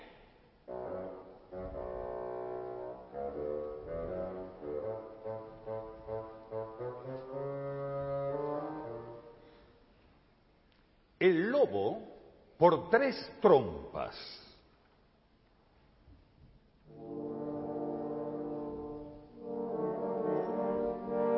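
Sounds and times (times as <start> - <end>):
bassoon playing: 0.6 - 9.5, 16.9 - 21.3
speech: 11.2 - 14.4.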